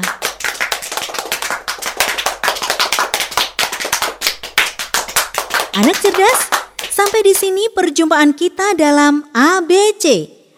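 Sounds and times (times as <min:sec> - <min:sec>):
hand clapping: 0:00.0 - 0:07.6
speech: 0:05.8 - 0:10.4.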